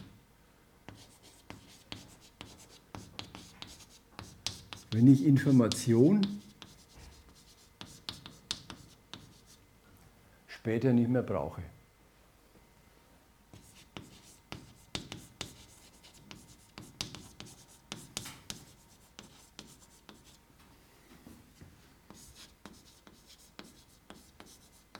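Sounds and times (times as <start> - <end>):
handwriting with a pen: 0.9 - 5.1, 5.7 - 9.6, 13.6 - 20.4, 22.1 - 24.9
speech: 5.0 - 6.4, 10.6 - 11.8.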